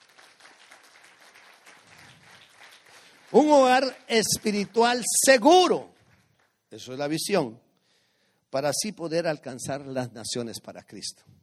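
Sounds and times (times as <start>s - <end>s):
audience applause: 0.0s - 5.0s
speech: 3.3s - 5.9s, 6.7s - 7.6s, 8.5s - 11.4s.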